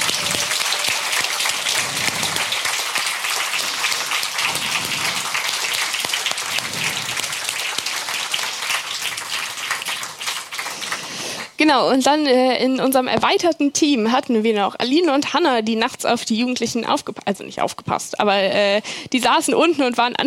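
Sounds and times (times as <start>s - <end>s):
audience applause: 0.0s - 11.5s
speech: 11.7s - 20.2s.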